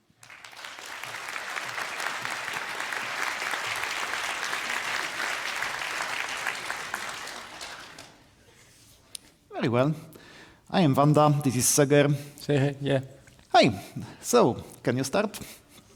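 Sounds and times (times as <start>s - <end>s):
audience applause welcoming two speakers: 0.0s - 8.3s
speech: 9.6s - 15.6s.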